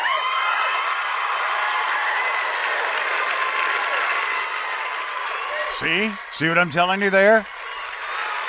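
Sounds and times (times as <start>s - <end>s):
live studio audience applauding: 0.0s - 8.4s
speech: 5.8s - 7.5s.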